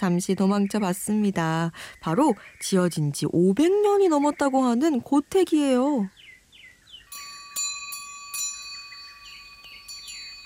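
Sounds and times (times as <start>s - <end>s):
speech: 0.0s - 6.2s
wind chime ringing in the wind at tiled eaves: 7.0s - 10.4s.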